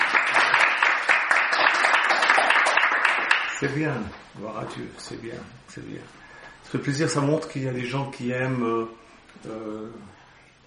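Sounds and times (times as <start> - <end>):
audience applause: 0.0 - 3.6
speech: 3.6 - 10.2.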